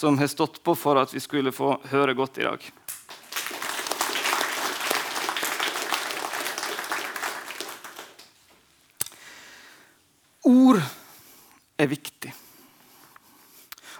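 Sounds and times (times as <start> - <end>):
speech: 0.0 - 3.1, 10.4 - 11.0, 11.8 - 12.4
audience applause: 2.9 - 8.4.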